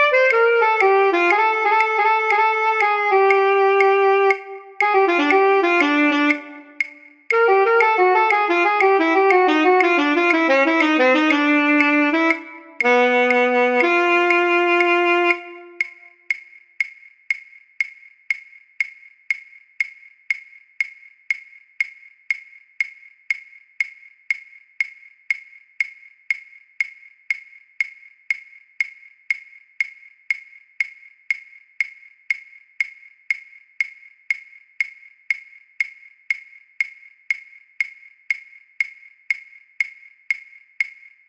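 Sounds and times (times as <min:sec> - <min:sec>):
solo instrument playing: 0:00.0 - 0:16.0
click: 0:00.0 - 0:41.2.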